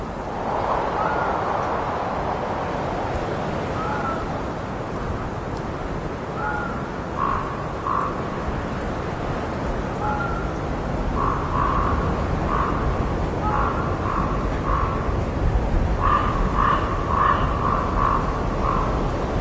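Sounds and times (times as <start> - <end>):
wind noise: 0.0 - 19.3
crow giving short hoarse caws: 6.4 - 8.2, 11.2 - 15.1, 16.0 - 19.0.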